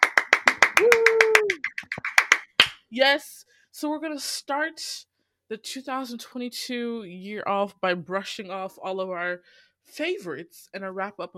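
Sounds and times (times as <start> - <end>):
round of applause: 0.0 - 2.8
speech: 2.9 - 11.3.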